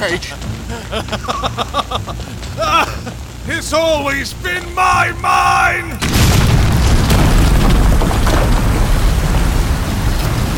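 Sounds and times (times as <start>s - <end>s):
speech: 0.0s - 6.2s
crackling bursts: 3.3s - 10.4s
deep booming mine explosion: 6.0s - 9.8s.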